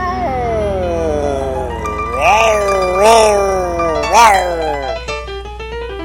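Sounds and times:
person imitating a tomcat's mating yowl: 0.0 - 5.1.

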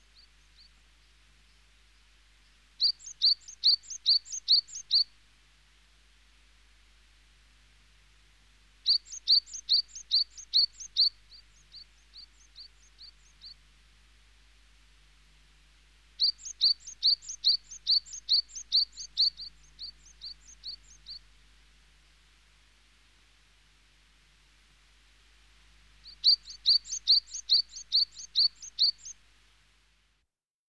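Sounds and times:
small bird chirping: 2.8 - 5.1, 8.8 - 13.6, 16.2 - 21.3, 26.0 - 29.2.

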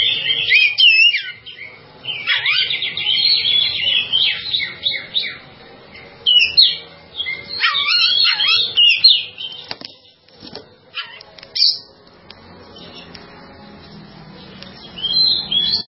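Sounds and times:
bird song chirps and warbled phrases: 0.0 - 10.2, 14.4 - 15.9.

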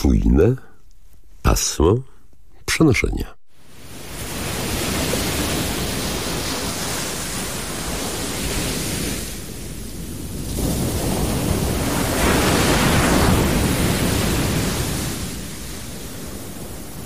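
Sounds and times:
speech: 0.0 - 0.7, 1.5 - 2.1, 2.7 - 3.4
sea waves on a beach: 3.6 - 17.0.

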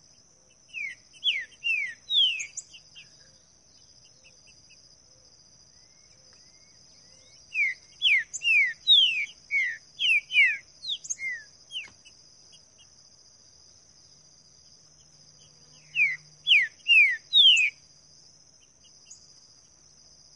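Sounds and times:
green-winged saltator singing in the bush: 0.7 - 3.2, 5.8 - 12.1, 15.7 - 17.8.

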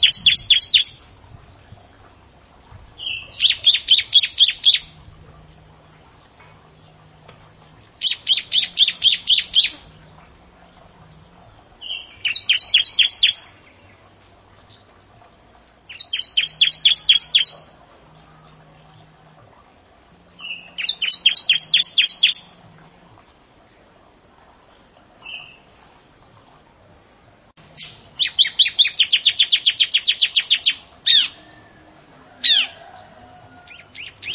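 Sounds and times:
bar-winged prinia chirping song: 0.0 - 2.1, 3.0 - 5.9, 6.7 - 14.1, 15.9 - 19.2, 20.3 - 22.6, 27.7 - 31.8, 33.7 - 34.3.

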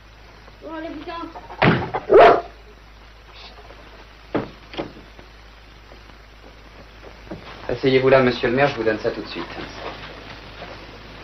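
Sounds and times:
speech: 0.6 - 2.4, 7.7 - 10.1
dog barking: 2.0 - 2.6.

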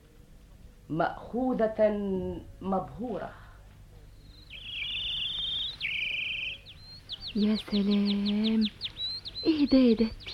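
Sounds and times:
speech: 0.9 - 3.4, 7.4 - 10.3
bird singing buzzy trills in a garden: 4.0 - 10.3.

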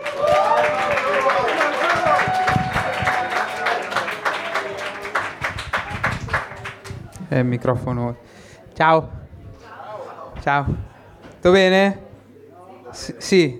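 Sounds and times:
comedy club audience applause: 0.0 - 7.0
speech: 7.3 - 9.2, 10.4 - 12.0, 12.9 - 13.5.

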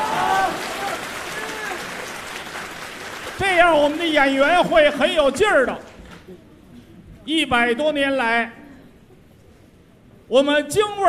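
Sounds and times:
audience applause: 0.0 - 4.9
speech: 3.4 - 6.4, 7.2 - 8.6, 10.3 - 11.0.

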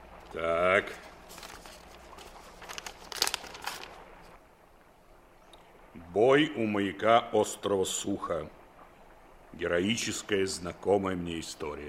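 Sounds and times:
speech: 0.3 - 1.0, 6.2 - 8.6, 9.6 - 11.8
heavy registered mail package being torn open: 1.3 - 4.0.

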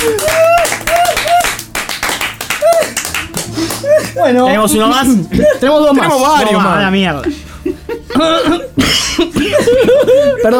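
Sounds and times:
applause: 0.0 - 4.2
laughter: 0.0 - 10.5
speech: 4.2 - 7.4, 8.1 - 10.5.

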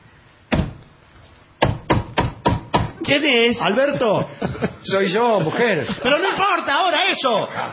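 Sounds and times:
knocking on a door: 1.6 - 3.0
speech: 3.1 - 7.7
laughter: 3.7 - 7.7.

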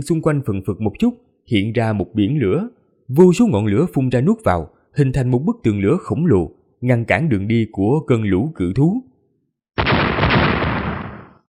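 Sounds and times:
speech: 0.0 - 9.1
series of loud explosions: 9.8 - 11.5.

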